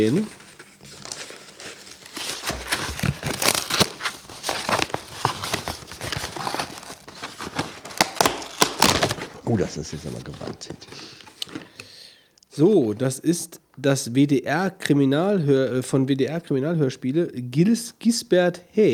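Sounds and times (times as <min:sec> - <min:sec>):
speech: 0:00.0 - 0:00.4, 0:09.5 - 0:11.2, 0:12.6 - 0:18.9
wrapped present being unwrapped: 0:00.0 - 0:11.9.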